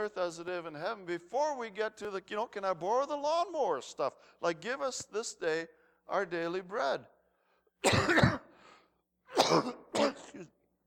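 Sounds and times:
speech: 0.0 - 7.2, 7.8 - 8.4, 9.4 - 10.6
person coughing: 7.8 - 8.6, 9.3 - 10.6.

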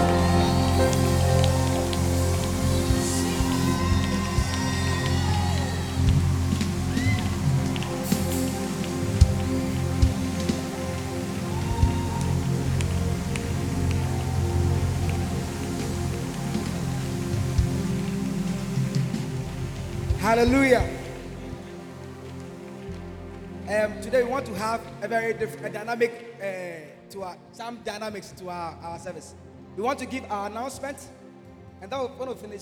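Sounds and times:
audience clapping hands: 0.0 - 24.6
low musical drone: 0.0 - 25.8
speech: 20.3 - 20.9, 23.7 - 31.2, 31.8 - 32.6.

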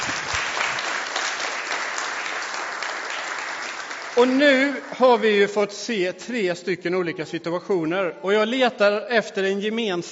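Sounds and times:
audience applause: 0.0 - 5.4
speech: 4.2 - 10.1.

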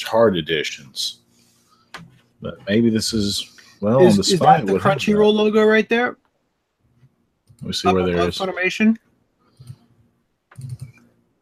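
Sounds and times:
speech: 0.1 - 1.2, 2.0 - 6.2, 7.6 - 9.0
computer mouse clicking on an on-screen image: 7.4 - 7.7, 9.6 - 9.9, 10.5 - 11.2.

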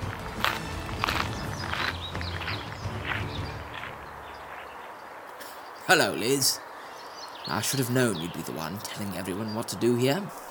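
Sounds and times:
footsteps walking: 0.0 - 4.8
speech: 5.9 - 6.6, 7.5 - 10.4.

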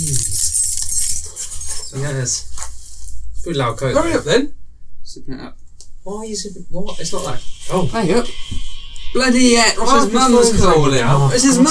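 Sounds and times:
keys jingling: 0.0 - 2.3
speech: 1.9 - 2.5, 3.4 - 11.7.

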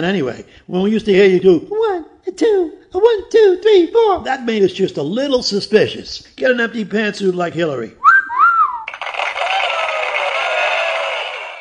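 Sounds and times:
speech: 0.0 - 8.0
sharp two-note whistle: 8.0 - 8.9
canned applause effect with crowd noise: 8.8 - 11.5.

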